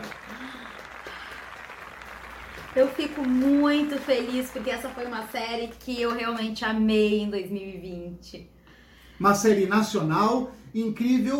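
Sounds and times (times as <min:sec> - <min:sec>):
audience applause: 0:00.0 - 0:06.2
speech: 0:02.8 - 0:08.6, 0:09.2 - 0:11.3.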